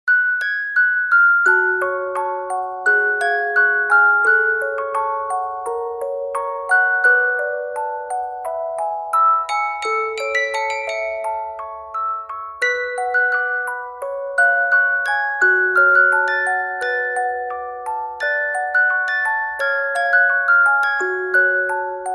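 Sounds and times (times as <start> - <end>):
music box: 0.1 - 22.1.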